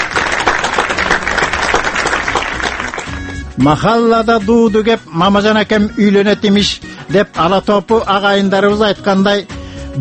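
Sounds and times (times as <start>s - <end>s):
audience applause: 0.0s - 3.5s
speech: 3.6s - 9.9s.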